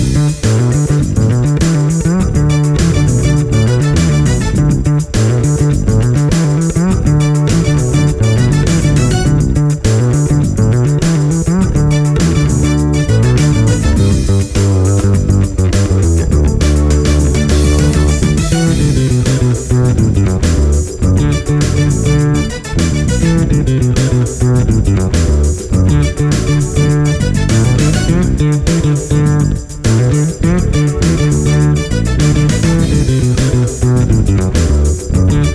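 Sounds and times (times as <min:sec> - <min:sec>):
six-string electric double bass: 0:00.0 - 0:35.5.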